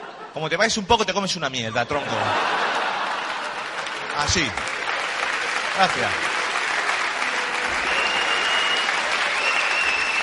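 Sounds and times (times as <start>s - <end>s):
laughter: 0.0s - 0.6s, 1.8s - 4.8s
speech: 0.4s - 2.6s, 4.2s - 4.7s, 5.8s - 6.3s
audience applause: 2.1s - 10.2s.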